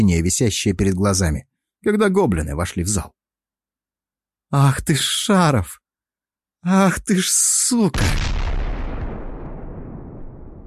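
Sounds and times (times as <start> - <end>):
speech: 0.0 - 3.2, 4.5 - 5.8, 6.6 - 8.6
distant explosion echoing through a fortress: 7.9 - 10.6.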